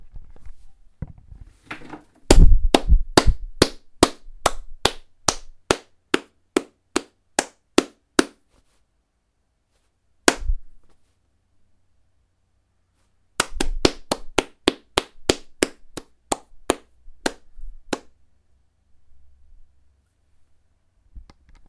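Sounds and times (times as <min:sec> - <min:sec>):
single person clapping hands: 0:02.3 - 0:08.4, 0:10.3 - 0:10.5, 0:13.4 - 0:18.2.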